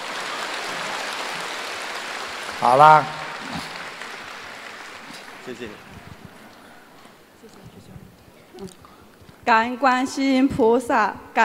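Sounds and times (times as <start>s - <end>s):
applause: 0.0s - 7.1s
speech: 2.6s - 3.7s, 5.5s - 6.0s, 8.6s - 8.8s, 9.5s - 11.4s.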